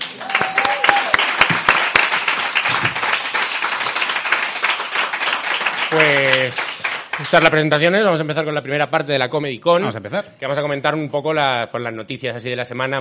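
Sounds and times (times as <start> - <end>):
audience applause: 0.0 - 7.8
speech: 7.2 - 12.9.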